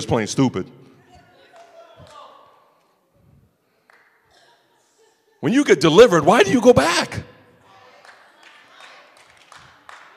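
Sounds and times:
speech: 0:00.0 - 0:00.8, 0:05.4 - 0:07.3
scattered hand claps from an audience: 0:08.0 - 0:10.1.

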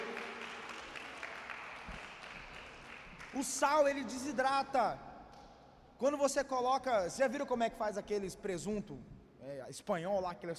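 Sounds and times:
audience applause: 0:00.0 - 0:03.6
speech: 0:03.3 - 0:05.1, 0:06.0 - 0:10.5.

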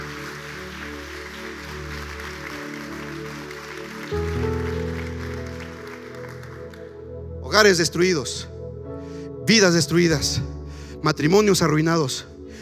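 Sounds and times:
audience applauding: 0:00.0 - 0:07.1
sustained keyboard or organ chords: 0:04.1 - 0:12.6
speech: 0:07.6 - 0:08.5, 0:09.5 - 0:12.3.

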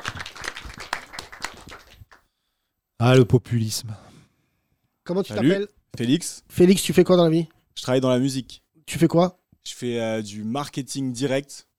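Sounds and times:
audience applause: 0:00.0 - 0:02.2
speech: 0:03.0 - 0:04.0, 0:05.1 - 0:11.7.

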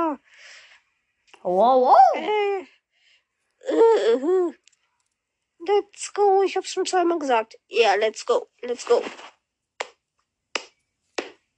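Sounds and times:
speech: 0:01.4 - 0:02.8, 0:03.6 - 0:04.6, 0:05.6 - 0:09.3
hand claps: 0:09.8 - 0:11.4.

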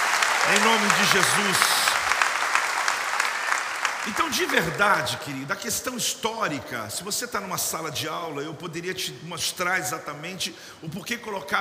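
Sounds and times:
audience applause: 0:00.0 - 0:05.4
speech: 0:00.4 - 0:01.9, 0:04.0 - 0:11.5.

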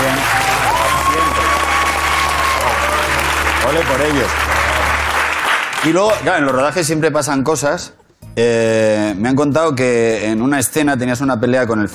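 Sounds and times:
crowd applause: 0:00.0 - 0:06.5
speech: 0:03.7 - 0:04.5, 0:05.8 - 0:11.9.

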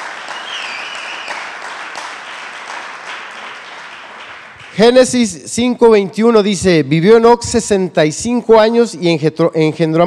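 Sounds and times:
crowd applauding: 0:00.0 - 0:05.3
faint whistle or cheer: 0:00.2 - 0:01.5
speech: 0:04.8 - 0:10.0.

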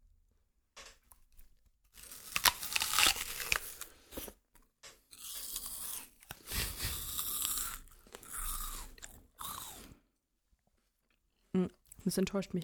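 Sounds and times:
biting and chewing of a Cosmic Crunch snack recorded as ASMR: 0:01.1 - 0:10.0.

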